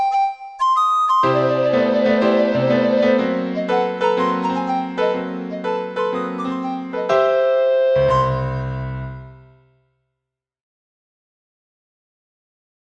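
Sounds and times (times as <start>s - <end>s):
recorder suite: 0.0s - 9.4s.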